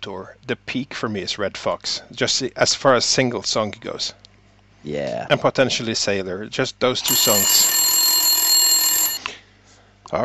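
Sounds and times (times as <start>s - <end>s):
speech: 0.0s - 4.2s, 4.8s - 7.6s
mechanical egg timer ringing: 7.1s - 9.2s.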